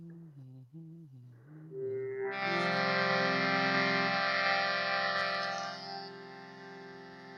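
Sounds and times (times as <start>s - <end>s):
Indian harmonium playing: 1.7s - 7.3s.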